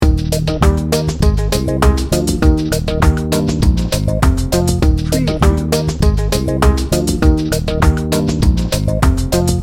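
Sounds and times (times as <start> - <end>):
tropical music loop: 0.0 - 9.6.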